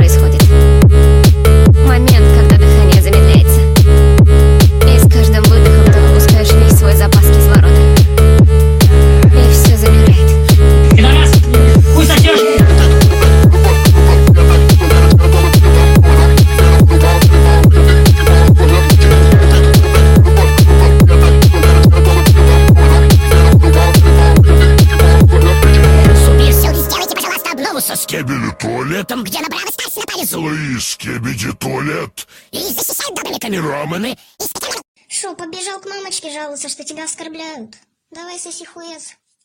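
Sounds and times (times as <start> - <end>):
sped up Brazilian phonk music for gym training: 0.0 - 30.8.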